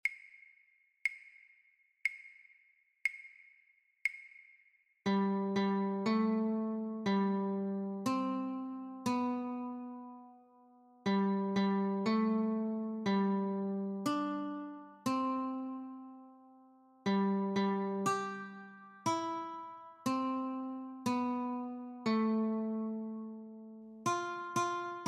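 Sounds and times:
guitar notes: 0:05.1 - 0:25.0.

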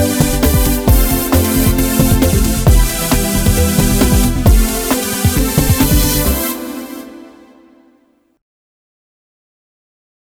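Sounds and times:
rhythmic exam music: 0:00.0 - 0:07.9.

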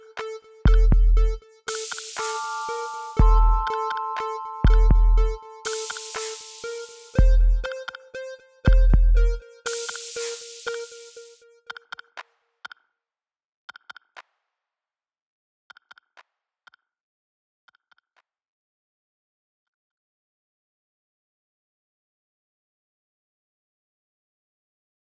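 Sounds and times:
instrumental type beat: 0:00.0 - 0:11.5.

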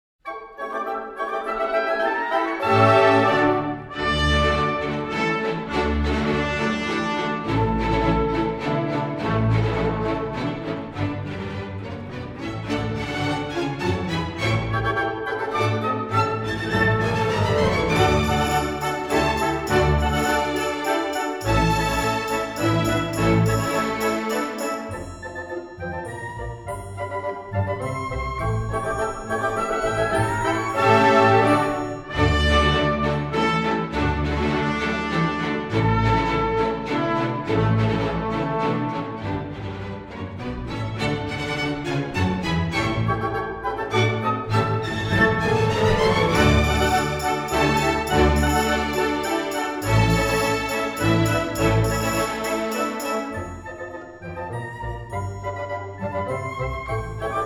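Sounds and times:
polonaise music for ballet grands battements: 0:00.3 - 0:57.4.

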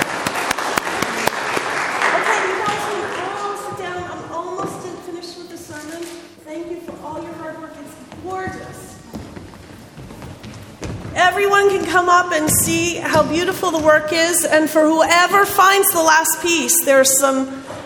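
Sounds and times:
group clapping: 0:00.0 - 0:04.1
speech: 0:11.9 - 0:17.7.

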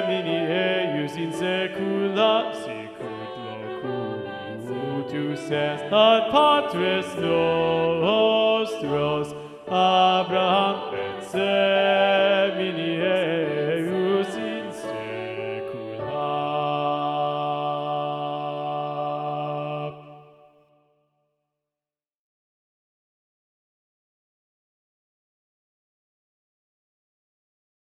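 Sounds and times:
SATB choir with predominant bass voice: 0:00.0 - 0:20.5.

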